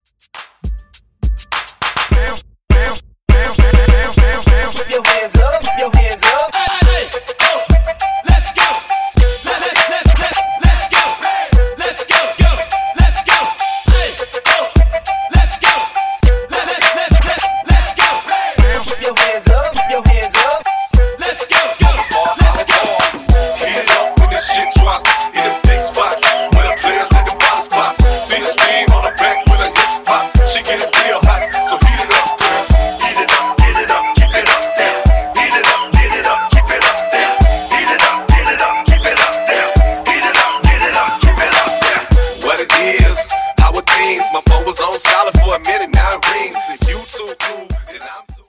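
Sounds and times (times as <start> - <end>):
breakbeat: 0.0 - 48.4.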